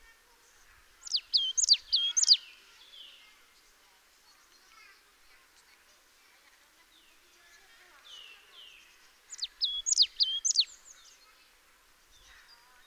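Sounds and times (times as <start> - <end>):
marsh tit Poecile palustris calling: 1.0 - 2.5, 8.1 - 11.2.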